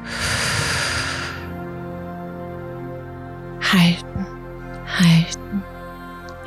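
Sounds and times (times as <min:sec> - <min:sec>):
deep breath in during a guided breathing exercise: 0:00.0 - 0:01.6
speech: 0:03.7 - 0:04.4, 0:05.0 - 0:05.4.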